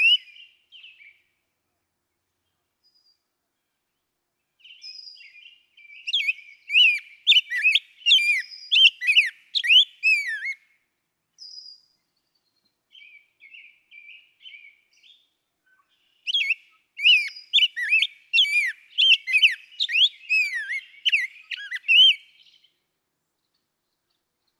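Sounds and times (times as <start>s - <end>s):
Rose-breasted Grosbeak whistled song: 4.6s - 10.6s, 11.4s - 11.9s, 12.9s - 22.7s.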